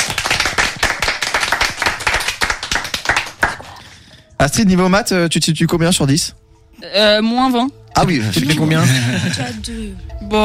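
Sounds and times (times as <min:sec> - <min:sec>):
applause: 0:00.0 - 0:03.8
speech: 0:04.4 - 0:10.4
laughter: 0:08.3 - 0:09.7.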